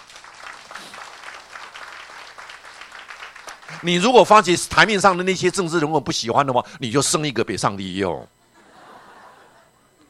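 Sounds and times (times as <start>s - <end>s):
audience applause: 0.0s - 4.3s
speech: 3.7s - 8.4s
laughter: 8.5s - 10.0s.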